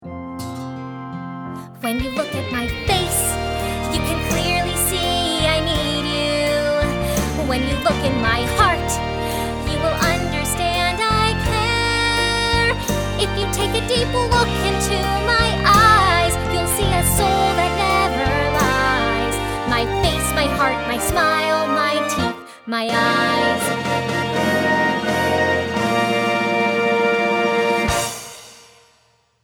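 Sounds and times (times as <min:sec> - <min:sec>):
vocals: 0:01.6 - 0:28.2.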